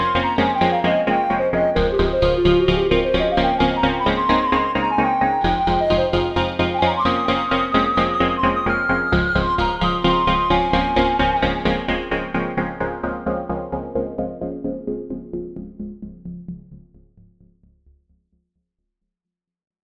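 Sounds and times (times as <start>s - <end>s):
echo flute improvisation on synthesizers: 0.0s - 14.7s.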